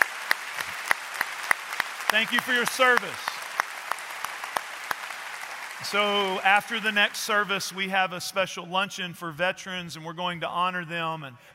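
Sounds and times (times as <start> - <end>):
audience applause: 0.0 - 7.8
speech: 2.1 - 3.3, 5.8 - 11.5.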